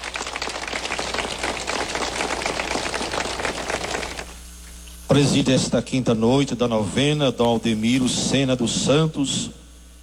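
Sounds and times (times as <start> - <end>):
warm round of applause: 0.0 - 4.4
speech: 5.2 - 9.6.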